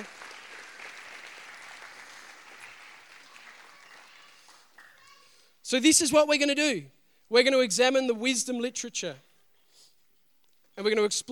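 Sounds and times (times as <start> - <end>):
audience applause: 0.0 - 5.4
speech: 5.7 - 9.3, 10.8 - 11.3.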